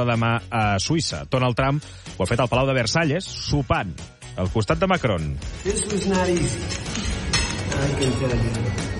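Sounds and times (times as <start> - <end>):
speech: 0.0 - 7.1, 7.7 - 8.9
plates and cutlery clinking: 5.6 - 8.5.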